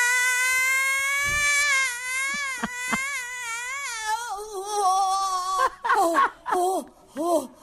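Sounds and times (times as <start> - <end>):
recorded scream therapy screaming: 0.0 - 5.8.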